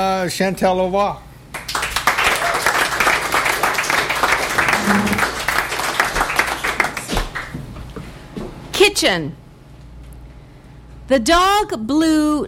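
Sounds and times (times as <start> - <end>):
speech: 0.0 - 1.3, 4.9 - 5.4, 8.8 - 9.4, 11.1 - 12.4
audience applause: 1.6 - 7.6.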